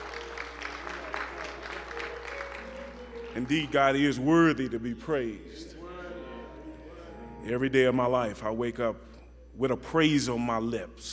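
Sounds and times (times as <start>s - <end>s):
audience clapping hands in praise: 0.0s - 4.5s
speech: 3.4s - 5.7s, 7.4s - 11.1s.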